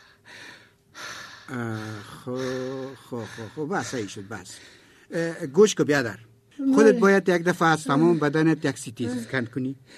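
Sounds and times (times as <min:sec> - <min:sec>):
patient drawing deep breaths during a doctor's examination: 0:00.0 - 0:05.2, 0:09.1 - 0:09.9
speech: 0:01.5 - 0:09.9.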